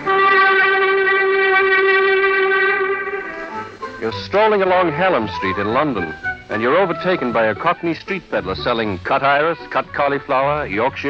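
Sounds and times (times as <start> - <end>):
metro train horn signalling in a subway station: 0.0 - 7.4
speech: 4.1 - 11.0.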